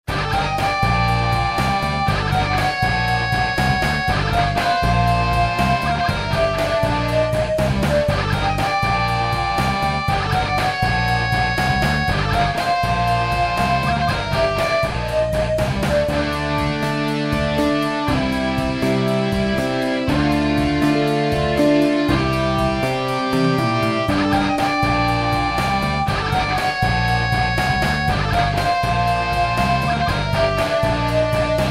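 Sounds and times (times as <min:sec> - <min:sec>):
rock music: 0:00.0 - 0:31.6.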